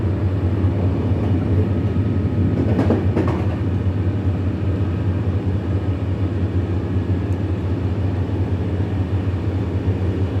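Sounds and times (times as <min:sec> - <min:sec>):
train rattling along its tracks in the evening: 0:00.0 - 0:10.3
clatter of brighter knocks: 0:02.6 - 0:03.7.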